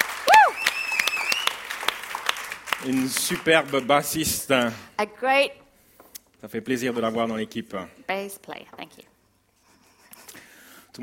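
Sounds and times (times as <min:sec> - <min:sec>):
audience applause: 0:00.0 - 0:04.2
high whistle: 0:00.4 - 0:01.6
speech: 0:02.8 - 0:05.6, 0:06.4 - 0:09.1.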